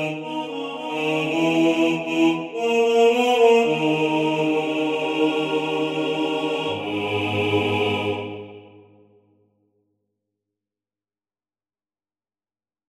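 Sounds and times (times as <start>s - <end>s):
male choir singing: 0.0s - 9.1s.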